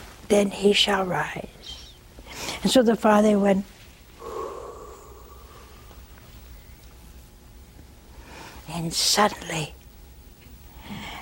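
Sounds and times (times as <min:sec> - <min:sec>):
speech: 0:00.3 - 0:01.6, 0:02.6 - 0:03.8, 0:08.8 - 0:09.8
storyteller imitating a breath blown out: 0:04.2 - 0:06.0.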